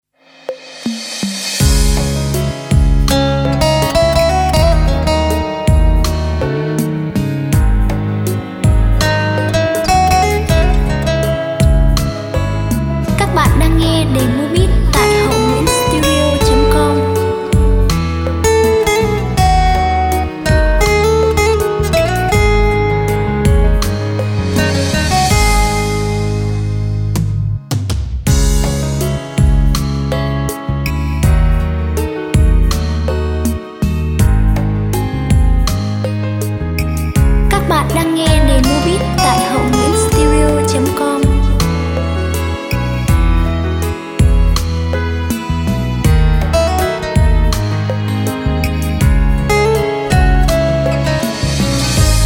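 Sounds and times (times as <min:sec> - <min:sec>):
music beat playback: 0:00.0 - 0:52.2.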